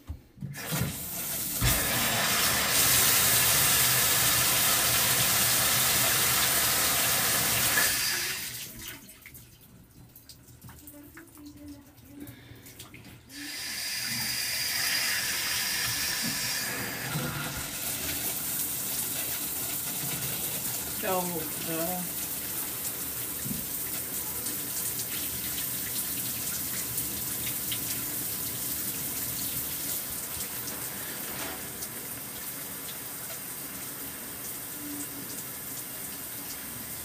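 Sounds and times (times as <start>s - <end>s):
shower running: 0.4s - 37.0s.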